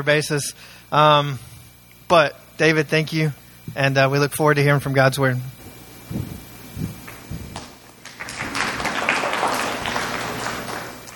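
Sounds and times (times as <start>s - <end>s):
speech: 0.0s - 1.5s, 2.1s - 6.3s
audience clapping: 6.2s - 11.1s.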